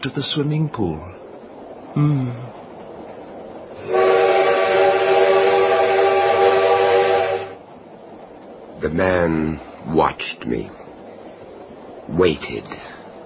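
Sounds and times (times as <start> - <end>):
speech: 0.0 - 1.2, 2.0 - 2.6, 3.8 - 4.1, 8.8 - 10.9, 12.1 - 12.9
train rumbling: 0.0 - 13.2
train whistle: 3.8 - 7.6.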